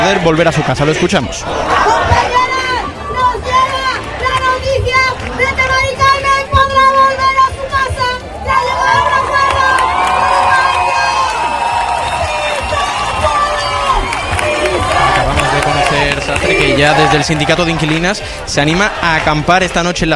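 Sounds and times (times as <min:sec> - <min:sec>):
protest crowd in Seville shouting and whooping: 0:00.0 - 0:05.7, 0:06.6 - 0:18.0
protest crowd in Seville chanting: 0:00.0 - 0:06.2, 0:10.2 - 0:19.6
speech: 0:00.1 - 0:02.2, 0:16.8 - 0:20.1.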